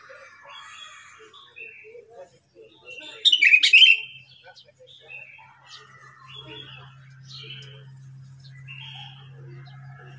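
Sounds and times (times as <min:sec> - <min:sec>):
sooty-headed bulbul whistled song: 0:03.3 - 0:04.1.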